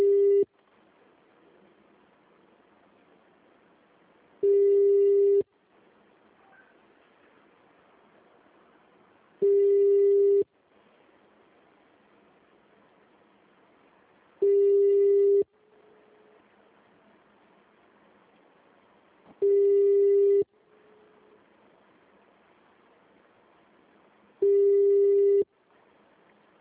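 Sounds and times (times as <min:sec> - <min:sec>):
telephone busy signal on a call: 0:00.0 - 0:00.5, 0:04.4 - 0:05.4, 0:09.4 - 0:10.5, 0:14.4 - 0:15.5, 0:19.4 - 0:20.5, 0:24.4 - 0:25.5.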